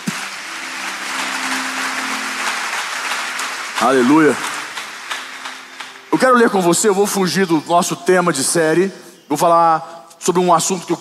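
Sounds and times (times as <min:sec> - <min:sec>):
audience applause: 0:00.0 - 0:07.1
speech: 0:03.8 - 0:04.5, 0:06.2 - 0:10.9.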